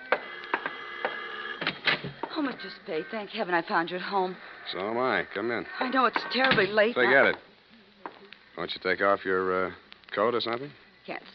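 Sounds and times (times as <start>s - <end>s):
apartment door buzzer droning: 0.0s - 3.6s
speech: 2.4s - 7.5s, 8.6s - 11.3s.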